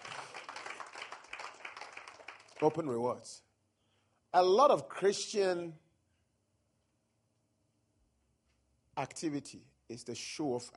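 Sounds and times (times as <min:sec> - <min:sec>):
audience clapping: 0:00.0 - 0:03.2
speech: 0:02.6 - 0:03.5, 0:04.3 - 0:05.8, 0:09.0 - 0:10.7.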